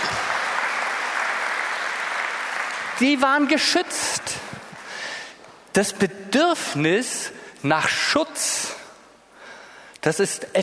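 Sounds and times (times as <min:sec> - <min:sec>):
audience applause: 0:00.0 - 0:04.9
speech: 0:03.0 - 0:04.6, 0:05.8 - 0:08.8, 0:10.0 - 0:10.6.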